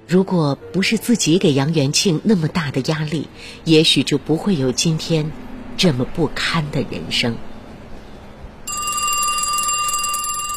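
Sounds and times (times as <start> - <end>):
speech: 0.1 - 7.5
electronic telephone ringing: 8.7 - 10.5.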